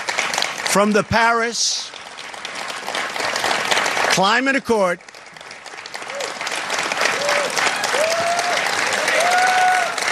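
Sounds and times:
audience applause: 0.0s - 10.1s
speech: 0.7s - 2.0s, 4.2s - 5.1s.

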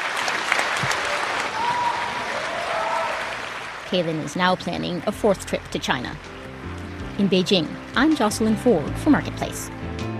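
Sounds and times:
concert audience applauding for an encore: 0.0s - 4.6s
speech: 3.9s - 6.3s, 7.2s - 9.8s.

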